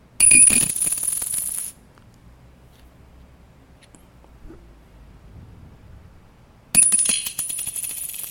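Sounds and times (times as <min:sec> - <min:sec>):
fifty-dollar copper coin dropped on a table: 0:00.2 - 0:01.8, 0:06.8 - 0:08.2.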